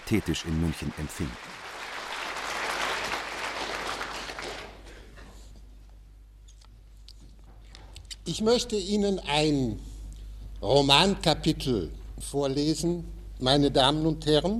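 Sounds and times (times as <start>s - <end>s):
crowd applause: 0.0s - 5.0s
low hum: 0.0s - 14.5s
speech: 0.1s - 1.6s, 8.3s - 9.9s, 10.6s - 14.5s.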